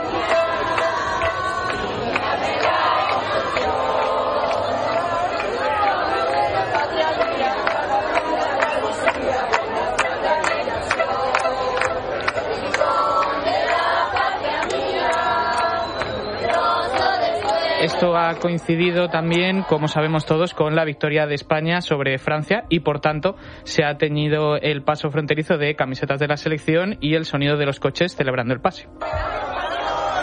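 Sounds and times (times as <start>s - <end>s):
crowd singing their anthem at the Gibraltar border crossing: 0.0s - 22.6s, 28.8s - 30.2s
constant crowd noise: 0.0s - 30.2s
speech: 18.0s - 29.2s.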